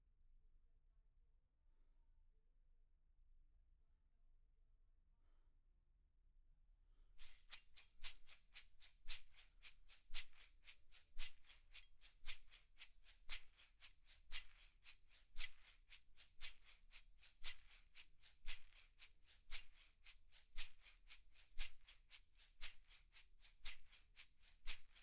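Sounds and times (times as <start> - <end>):
percussion recorded with overhead microphones: 7.2 - 25.0.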